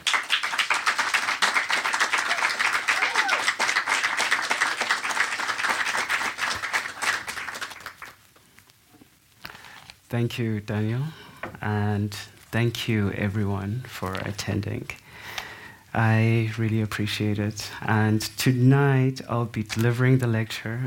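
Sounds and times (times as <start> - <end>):
audience applauding a novelist welcomed to the stage: 0.0 - 8.2
speech: 10.1 - 15.0, 15.9 - 20.8.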